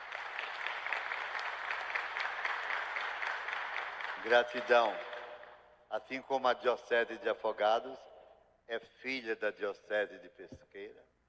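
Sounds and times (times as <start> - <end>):
audience applause: 0.0 - 5.4
speech: 4.2 - 5.1, 5.9 - 8.1, 8.7 - 11.1.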